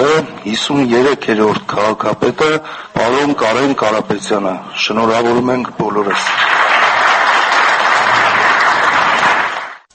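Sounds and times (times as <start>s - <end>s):
speech: 0.2s - 6.6s
standing ovation applause in the Yerevan city council: 6.1s - 9.9s.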